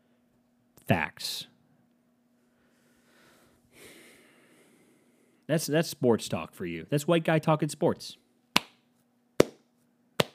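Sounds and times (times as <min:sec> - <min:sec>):
speech: 0:00.9 - 0:01.5, 0:05.5 - 0:08.2
hand claps: 0:08.6 - 0:08.8.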